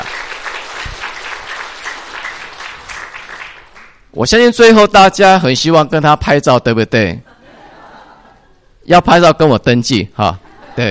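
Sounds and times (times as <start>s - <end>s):
audience applause: 0.0s - 4.0s
speech: 4.2s - 7.3s, 8.8s - 10.8s
laughter: 7.2s - 8.9s, 10.2s - 10.8s.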